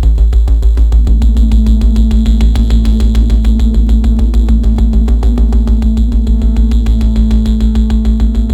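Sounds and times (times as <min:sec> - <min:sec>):
electronic music: 0:00.2 - 0:08.5.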